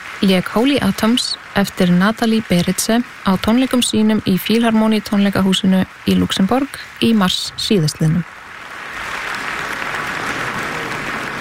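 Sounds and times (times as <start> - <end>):
speech: 0.2 - 8.3
concert audience applauding a pianist in the Philharmonie concert hall in Luxembourg: 8.6 - 11.4.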